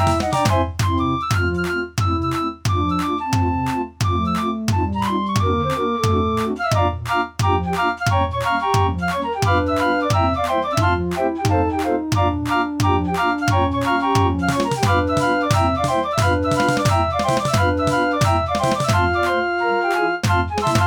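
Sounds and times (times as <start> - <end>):
street organs playing a Christmas rock song: 0.0 - 20.8.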